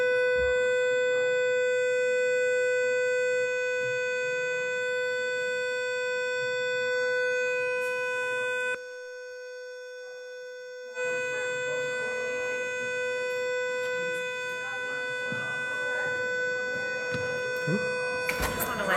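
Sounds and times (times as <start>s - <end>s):
building fire alarm blaring: 0.0s - 18.9s
faint murmuring: 14.0s - 18.9s.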